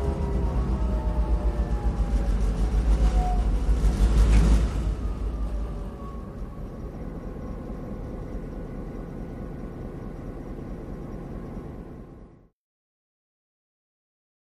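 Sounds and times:
diesel train engine revving up and down: 0:00.0 - 0:08.7.

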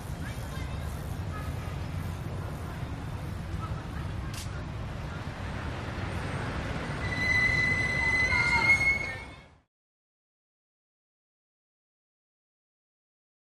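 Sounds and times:
bicycles passing by: 0:00.0 - 0:09.6.

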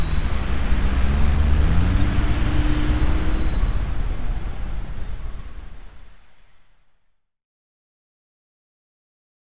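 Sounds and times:
heavy traffic jam in a big city: 0:00.0 - 0:06.9.

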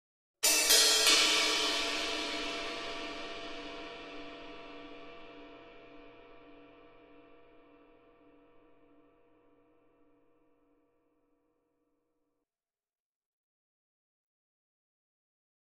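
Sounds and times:
drum kit cymbal accent: 0:00.4 - 0:04.2.

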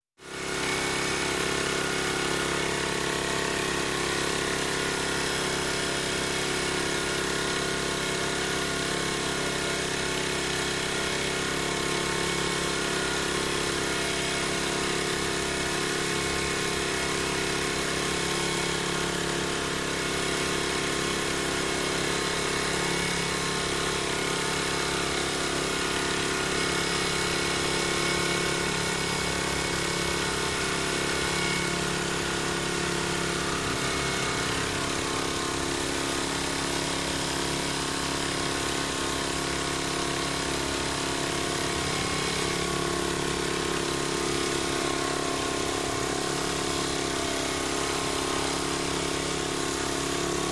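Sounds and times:
edge trimmer running steady: 0:00.2 - 0:50.4.

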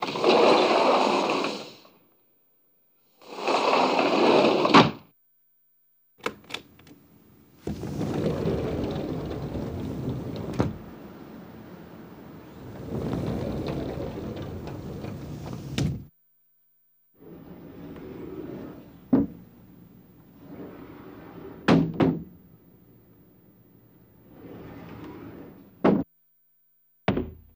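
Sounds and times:
sliding glass doors: 0:00.0 - 0:01.8, 0:03.2 - 0:05.0, 0:06.7 - 0:16.1, 0:17.2 - 0:23.3, 0:23.9 - 0:26.1.

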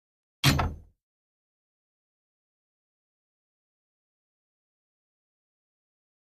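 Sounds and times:
gym weight equipment: 0:00.4 - 0:00.9.

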